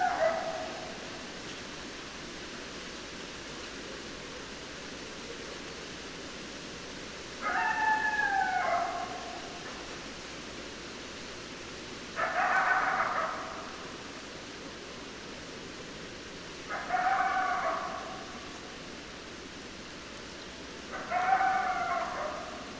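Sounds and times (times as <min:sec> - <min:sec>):
coyote howl: 0:00.0 - 0:01.1, 0:07.4 - 0:09.6, 0:12.2 - 0:13.9, 0:16.7 - 0:18.6, 0:20.9 - 0:22.7
soft continuous hiss: 0:00.0 - 0:22.7.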